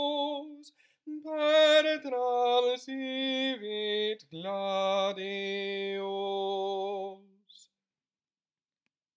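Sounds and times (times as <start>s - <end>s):
soprano singing a hymn: 0.0s - 7.3s.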